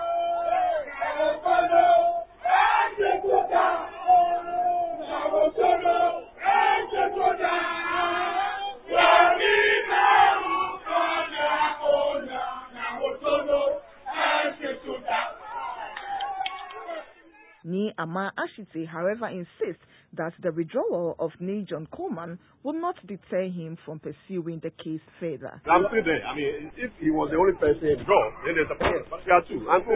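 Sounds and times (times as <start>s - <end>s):
supporters chanting: 0.0s - 17.4s
people shouting: 0.0s - 17.6s
speech: 18.0s - 29.9s.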